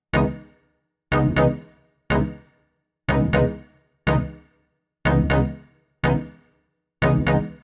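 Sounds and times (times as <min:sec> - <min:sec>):
music loop: 0:00.2 - 0:00.5, 0:01.1 - 0:02.4, 0:03.1 - 0:04.4, 0:05.1 - 0:06.3, 0:07.0 - 0:07.6.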